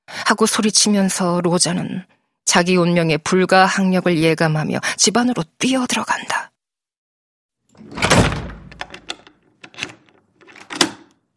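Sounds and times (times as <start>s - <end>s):
speech: 0.3s - 6.5s
door being shut: 7.7s - 11.2s.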